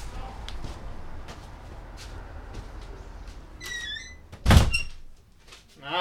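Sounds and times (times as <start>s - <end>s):
window squeaking scrape as it is pulled shut: 3.6s - 5.1s
window closing thud: 4.3s - 5.1s.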